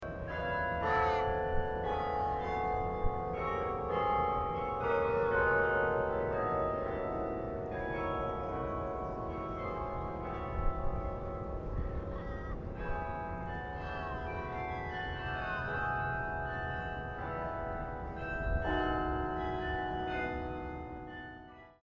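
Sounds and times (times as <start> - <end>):
carillon bells: 0.0 - 21.8.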